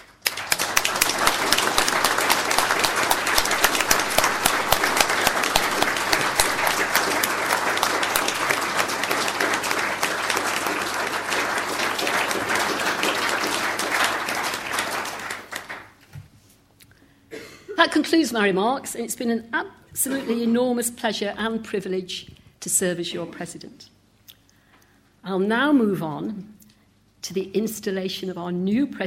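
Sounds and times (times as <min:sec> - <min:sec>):
audience round of applause: 0:00.0 - 0:16.0
speech: 0:18.1 - 0:23.9, 0:25.3 - 0:26.5, 0:27.3 - 0:29.0.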